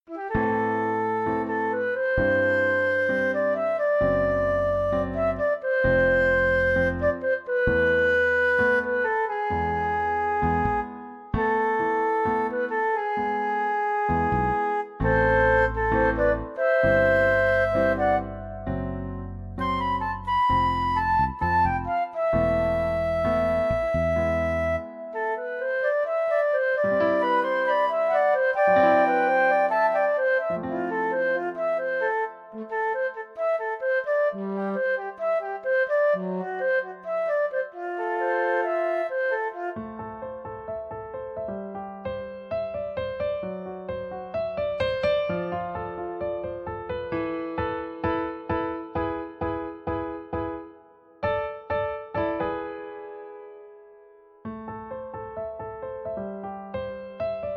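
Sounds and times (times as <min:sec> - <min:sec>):
pensive piano suite: 0:00.1 - 0:57.5.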